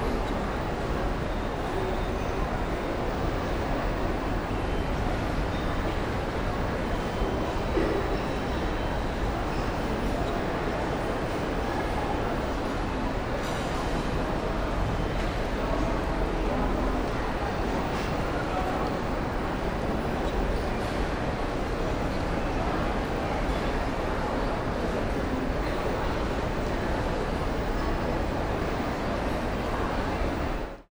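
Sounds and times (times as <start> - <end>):
large shopping mall crowd: 0.0 - 30.8.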